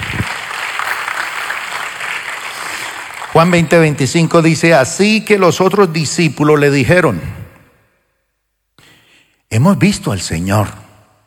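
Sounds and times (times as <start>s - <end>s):
crowd audience applauding: 0.0s - 4.4s
speech: 3.4s - 7.4s, 9.5s - 10.8s.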